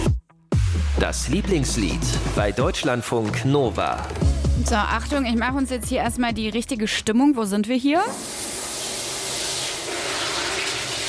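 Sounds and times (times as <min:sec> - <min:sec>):
speech: 0:01.0 - 0:08.5
shower running water spray: 0:08.1 - 0:11.0.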